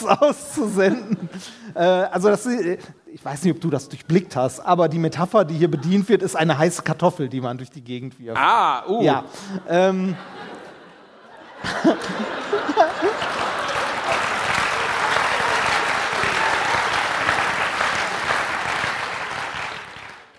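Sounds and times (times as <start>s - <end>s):
audience laughter: 0.0s - 1.6s, 5.4s - 6.5s, 9.4s - 14.3s
speech: 0.0s - 10.5s, 11.6s - 13.5s
live audience applause: 11.5s - 20.3s.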